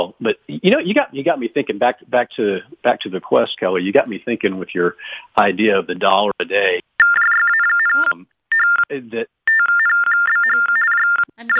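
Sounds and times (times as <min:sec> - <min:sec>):
speech: 0:00.0 - 0:06.9, 0:07.9 - 0:08.3, 0:08.9 - 0:09.4, 0:11.4 - 0:11.5
mobile phone ringing with a bright electronic ringtone: 0:07.0 - 0:08.8, 0:09.5 - 0:11.5.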